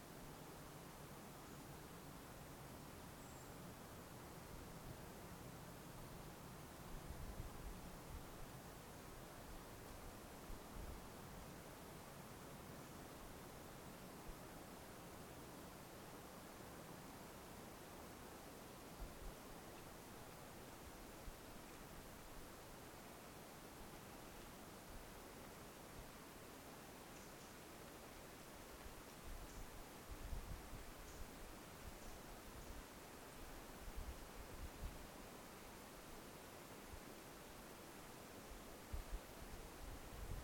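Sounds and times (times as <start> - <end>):
light wind in a redwood grove: 0.0 - 40.4
very subtle bird chirps in a redwood grove: 3.2 - 3.6, 27.1 - 27.6, 31.0 - 31.3.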